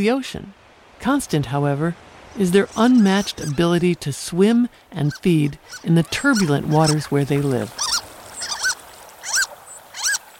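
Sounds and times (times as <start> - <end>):
speech: 0.0 - 8.1
harlequin duck calling: 2.7 - 3.6, 5.0 - 10.2.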